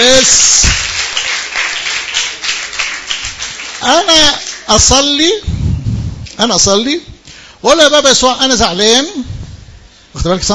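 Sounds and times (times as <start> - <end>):
audience clapping: 0.0 - 5.1
speech: 0.2 - 1.0, 3.8 - 5.6, 6.4 - 9.3, 10.2 - 10.5.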